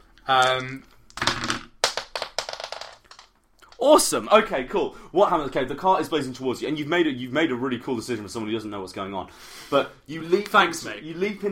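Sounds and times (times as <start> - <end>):
speech: 0.3 - 0.9, 3.8 - 11.5
four dice clattering across a hard tabletop: 0.4 - 4.0.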